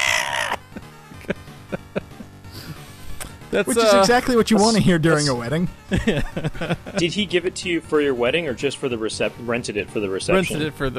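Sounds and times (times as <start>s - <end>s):
Ghostbusters pinball machine scream: 0.0s - 0.6s
laughter: 0.6s - 2.7s, 3.6s - 4.8s, 5.9s - 7.2s
speech: 3.6s - 10.9s.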